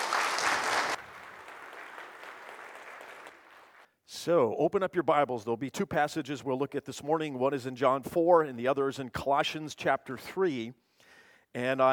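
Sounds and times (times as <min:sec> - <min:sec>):
audience applause: 0:00.0 - 0:03.9
speech: 0:04.2 - 0:10.8, 0:11.5 - 0:11.9.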